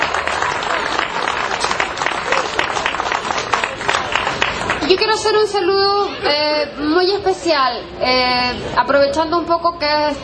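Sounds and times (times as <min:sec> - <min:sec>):
applause for the president of the Ñuñoa association of women microentrepreneurs: 0:00.0 - 0:05.3
speech: 0:05.1 - 0:10.2.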